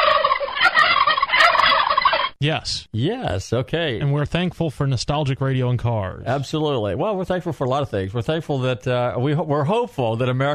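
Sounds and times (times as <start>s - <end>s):
turkey gobbling: 0.0s - 2.4s
speech: 2.4s - 10.5s.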